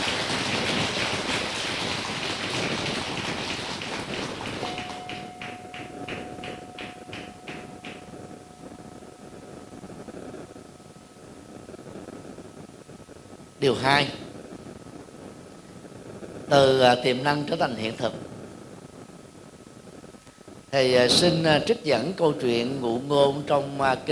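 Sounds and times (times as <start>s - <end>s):
audience applause: 0.0s - 6.0s
speech: 13.6s - 14.2s, 16.5s - 18.3s, 20.7s - 24.1s.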